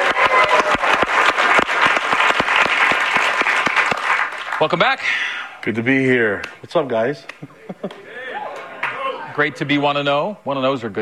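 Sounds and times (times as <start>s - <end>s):
audience applause: 0.0s - 5.0s
speech: 4.6s - 8.1s, 9.4s - 11.0s
laughter: 7.3s - 9.7s.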